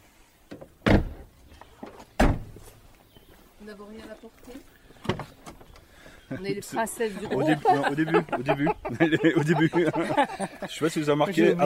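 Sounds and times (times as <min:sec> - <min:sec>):
car trunk slamming shut: 0:00.6 - 0:01.3, 0:02.2 - 0:02.6
speech: 0:03.7 - 0:05.5, 0:06.3 - 0:11.6
laughter: 0:06.3 - 0:11.6.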